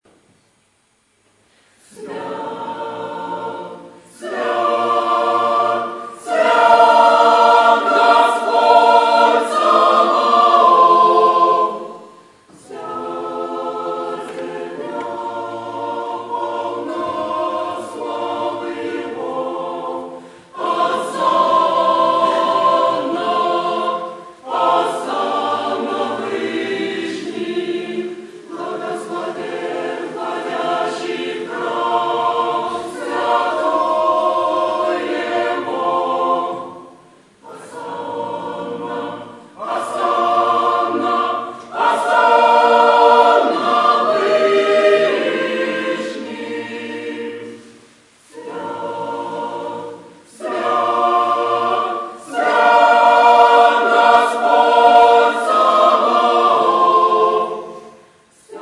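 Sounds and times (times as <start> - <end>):
choir singing: 1.8 - 58.5.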